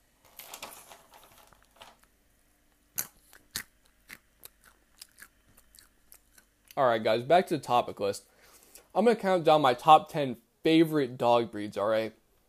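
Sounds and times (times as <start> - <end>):
chewing crunchy almonds: 2.9 - 6.8
speech: 6.8 - 8.3, 9.0 - 12.2.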